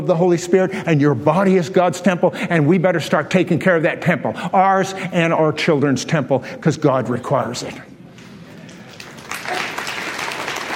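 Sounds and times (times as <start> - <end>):
speech: 0.0 - 7.9
audience clapping: 8.6 - 10.7.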